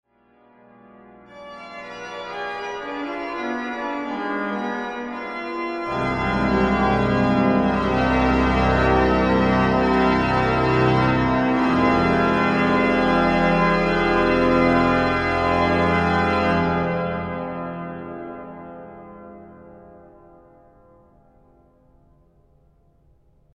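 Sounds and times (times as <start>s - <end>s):
organ allegro: 0.5s - 20.6s.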